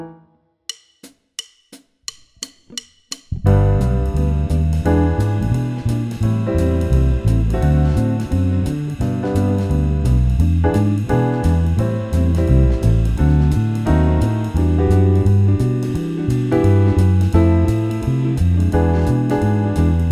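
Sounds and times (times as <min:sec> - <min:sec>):
swing music: 0:02.4 - 0:20.1.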